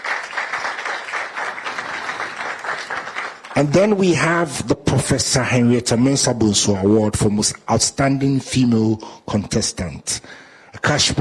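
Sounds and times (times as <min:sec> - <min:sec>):
audience applause: 0:00.0 - 0:03.8
speech: 0:03.6 - 0:11.1.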